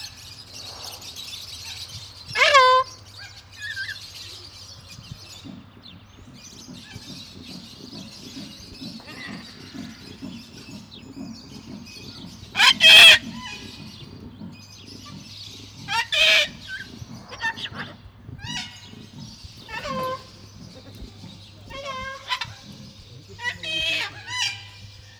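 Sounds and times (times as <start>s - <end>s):
sulphur-crested cockatoo in Nyíregyháza zoo: 2.3s - 3.0s, 5.0s - 25.1s.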